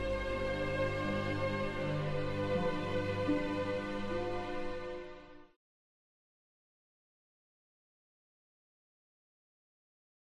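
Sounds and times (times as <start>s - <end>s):
symphony: 0.0s - 5.6s.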